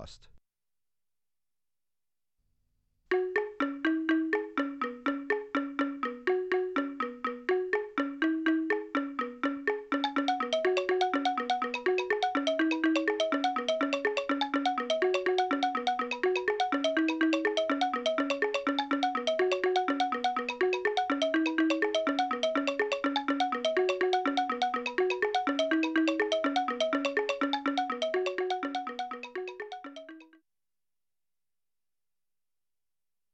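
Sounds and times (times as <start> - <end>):
African xylophone music in two parts: 3.1 - 30.4.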